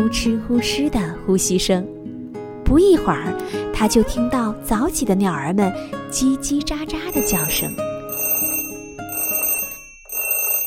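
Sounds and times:
speech: 0.0s - 2.0s, 2.7s - 7.9s
alarm clock ringing: 7.1s - 10.6s.

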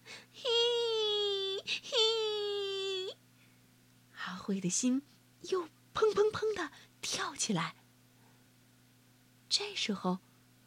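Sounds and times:
small child crying: 0.4s - 3.2s
speech: 4.5s - 7.8s, 9.6s - 10.3s.

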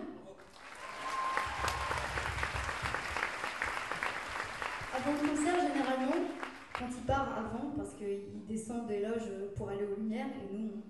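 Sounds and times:
audience applause: 0.4s - 7.0s
speech: 5.0s - 10.8s.

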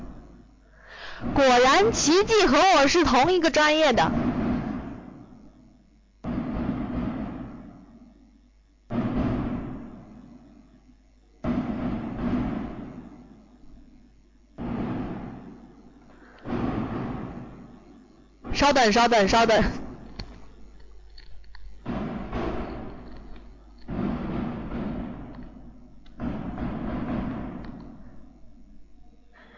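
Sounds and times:
firecrackers banging with rumbling decay: 0.0s - 29.5s
speech: 1.2s - 4.2s, 18.7s - 19.8s.

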